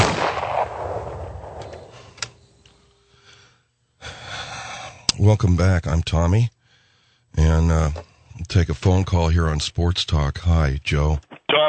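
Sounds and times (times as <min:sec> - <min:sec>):
gunshot: 0:00.0 - 0:02.1
sharp crack: 0:00.0 - 0:02.4
speech: 0:05.2 - 0:06.6, 0:07.4 - 0:11.6.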